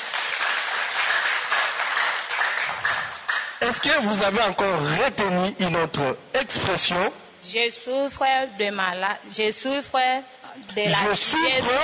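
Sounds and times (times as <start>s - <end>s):
audience applause: 0.0s - 4.0s
speech: 3.6s - 11.8s.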